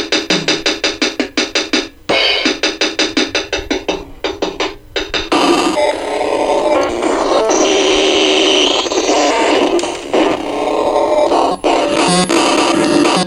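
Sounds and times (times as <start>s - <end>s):
circuit-bent HMP-139 electronic sounds: 0.0s - 13.2s.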